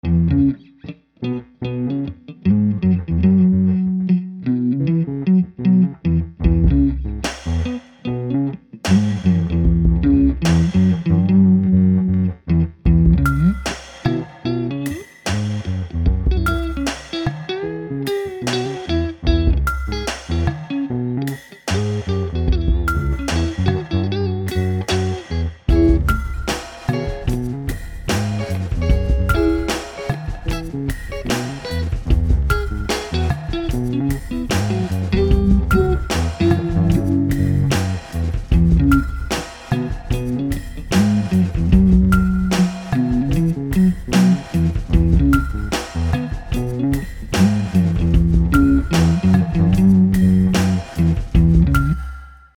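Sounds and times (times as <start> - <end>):
blues music: 0.0 - 52.2.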